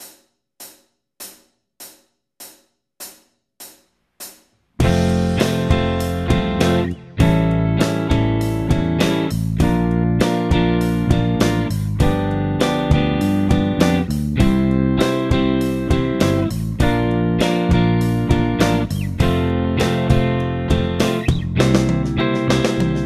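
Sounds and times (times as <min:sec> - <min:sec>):
blues guitar at full speed: 0:04.8 - 0:23.0.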